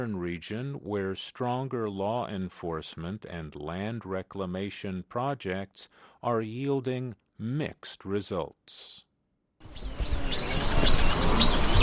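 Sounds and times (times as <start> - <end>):
speech: 0.0 - 11.8
birds chirping and whistling at a quiet forest mining site: 9.6 - 11.8.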